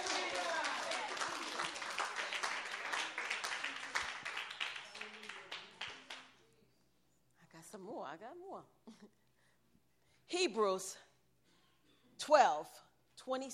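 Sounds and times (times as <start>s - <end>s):
crowd of people clapping: 0.0s - 6.4s
speech: 8.2s - 9.2s, 10.3s - 11.1s, 12.2s - 13.5s.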